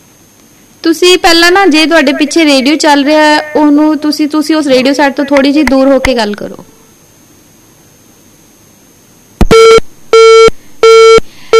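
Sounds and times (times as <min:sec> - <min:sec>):
speech: 0:00.8 - 0:06.7
phone busy signal beeps after a call disconnects: 0:09.4 - 0:11.5.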